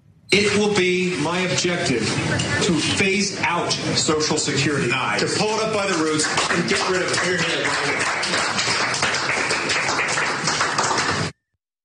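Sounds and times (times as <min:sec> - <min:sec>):
speech: 0:00.3 - 0:09.3
people clapping: 0:05.3 - 0:11.4.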